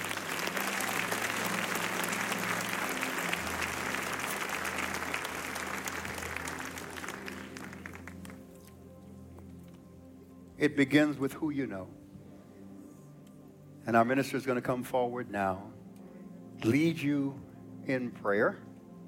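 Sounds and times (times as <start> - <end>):
audience applauding: 0.0 - 8.7
speech: 10.6 - 12.0, 13.9 - 15.7, 16.6 - 18.7.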